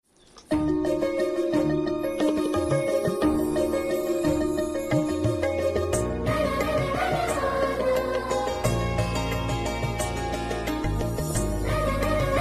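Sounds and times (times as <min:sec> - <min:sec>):
sad instrumental background music: 0:00.5 - 0:12.4.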